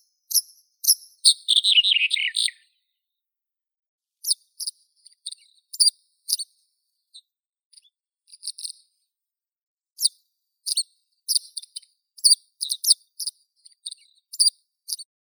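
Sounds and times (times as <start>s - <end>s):
red-headed bunting Emberiza bruniceps: 1.3s - 2.7s.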